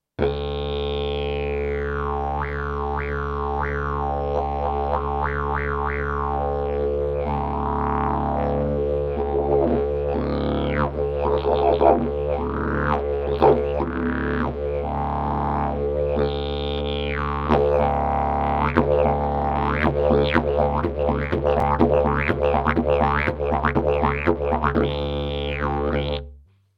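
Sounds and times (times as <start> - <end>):
didgeridoo: 0.2 - 26.4.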